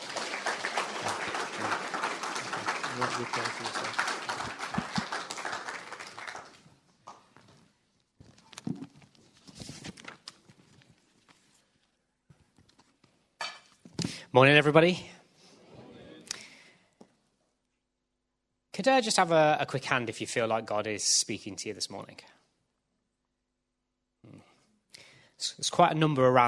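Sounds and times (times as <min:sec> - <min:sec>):
crowd applause: 0:00.0 - 0:07.2
speech: 0:03.0 - 0:04.1, 0:14.4 - 0:15.2, 0:18.8 - 0:22.4, 0:25.8 - 0:26.4.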